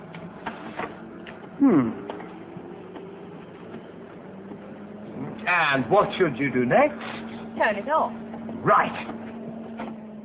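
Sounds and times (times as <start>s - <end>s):
photocopier starting up and making a copy: 0.0s - 10.2s
speech: 1.6s - 2.0s, 5.5s - 9.2s.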